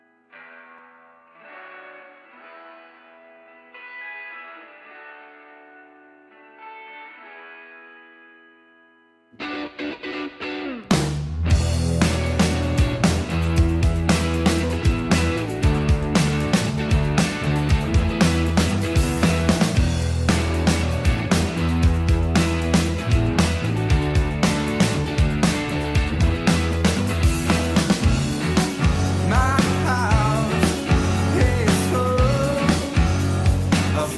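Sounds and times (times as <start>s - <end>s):
band playing a song: 10.8s - 34.1s.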